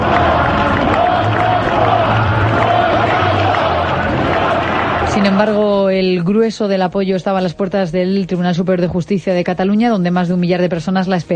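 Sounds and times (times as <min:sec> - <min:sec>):
large crowd shouting slogans in unison: 0:00.0 - 0:05.6
speech: 0:05.4 - 0:11.3.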